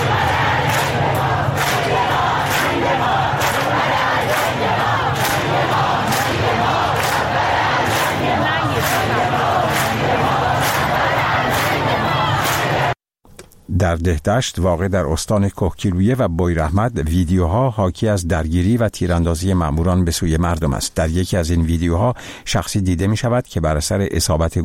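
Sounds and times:
large street crowd chanting a protest slogan: 0:00.0 - 0:13.0
speech: 0:13.8 - 0:24.6.

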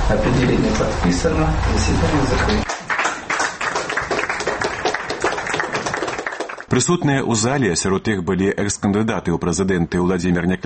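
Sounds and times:
speech: 0:00.1 - 0:02.7, 0:06.7 - 0:10.6
people applauding in a courtroom after a court ruling: 0:02.4 - 0:06.7.

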